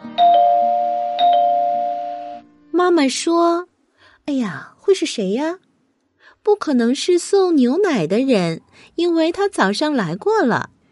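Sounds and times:
doorbell ringing: 0.2s - 2.4s
speech: 2.8s - 5.6s, 6.4s - 10.8s.

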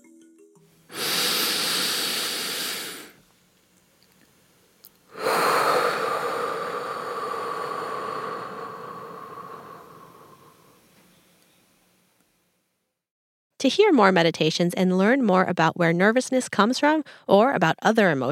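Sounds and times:
forceful exhale through the nose: 0.9s - 3.2s, 5.1s - 10.8s
speech: 13.6s - 18.2s.

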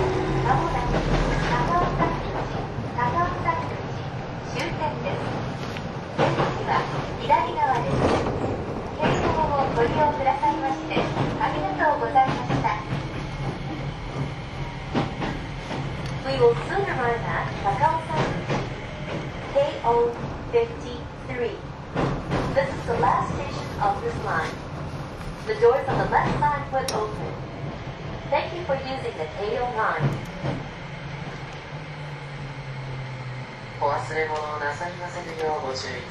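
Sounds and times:
Keio 5000 series train running rumble and clacks: 0.0s - 36.0s.

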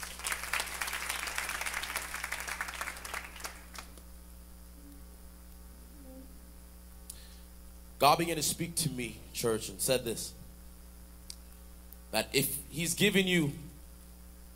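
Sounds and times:
audience clapping: 0.0s - 4.0s
speech: 8.0s - 10.4s, 12.1s - 13.6s.

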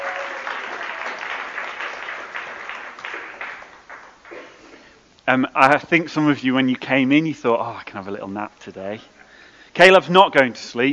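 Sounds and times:
audience applause: 0.0s - 4.6s
speech: 5.3s - 9.2s, 9.8s - 10.9s.

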